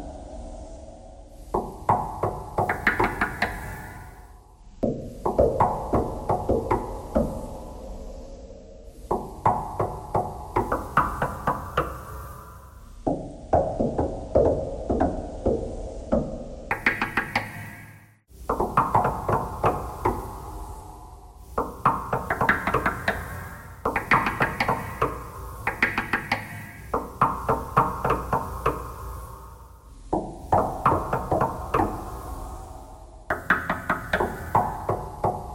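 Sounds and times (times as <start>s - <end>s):
knocking thread noise: 1.4s - 4.2s, 4.8s - 7.3s, 9.0s - 12.4s, 13.0s - 20.4s, 21.4s - 29.3s, 30.1s - 32.2s, 33.3s - 35.5s.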